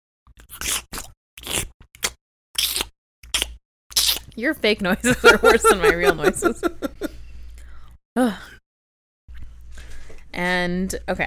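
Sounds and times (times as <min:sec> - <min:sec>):
person crunching a grape while eating: 0:00.3 - 0:04.4
speech: 0:04.4 - 0:07.1, 0:08.2 - 0:08.5, 0:10.4 - 0:11.2
laughter: 0:05.0 - 0:07.1.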